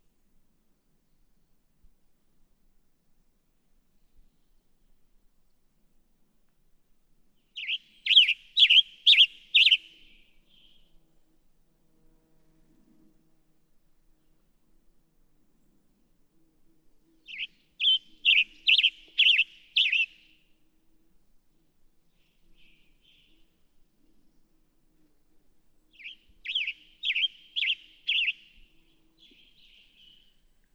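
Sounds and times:
Western Tanager: 7.6 - 9.9, 17.3 - 20.2, 26.0 - 28.6.

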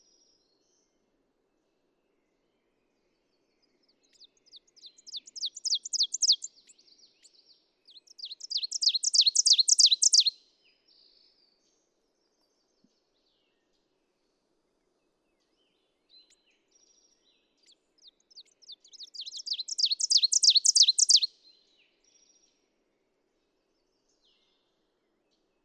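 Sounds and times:
ovenbird singing: 3.9 - 6.5, 7.9 - 10.4, 17.6 - 21.3.

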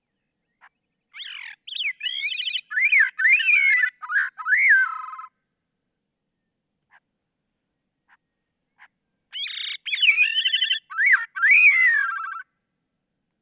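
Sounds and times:
Gray-cheeked Thrush calling: 0.6 - 5.3, 8.8 - 12.5.

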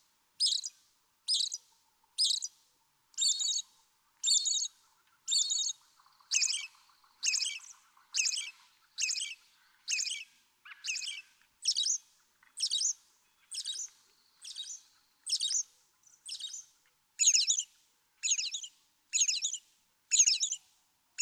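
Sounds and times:
American robin singing caroling phrases: 0.4 - 1.6, 2.2 - 2.5, 3.2 - 3.6, 5.3 - 12.0, 12.6 - 20.6.

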